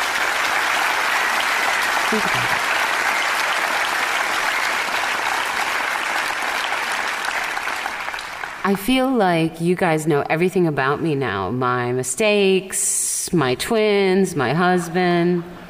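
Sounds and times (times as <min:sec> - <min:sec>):
audience applause: 0:00.0 - 0:08.7
speech: 0:02.1 - 0:02.7, 0:08.7 - 0:15.6.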